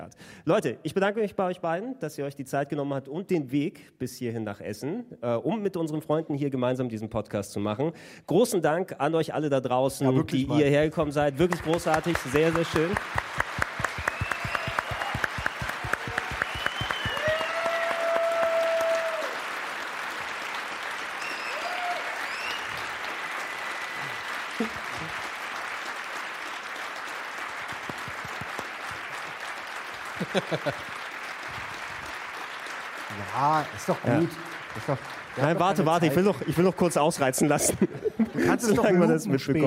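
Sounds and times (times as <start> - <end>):
speech: 0.0 - 13.3, 33.9 - 39.6
live audience applause: 11.2 - 38.7
whistles and cheers: 13.7 - 19.5, 21.1 - 24.7
laughter: 30.1 - 31.1, 34.2 - 39.6.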